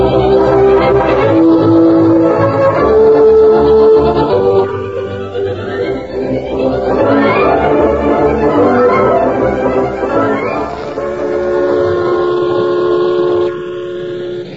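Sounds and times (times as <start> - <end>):
steam train whistle: 0.0 - 14.5.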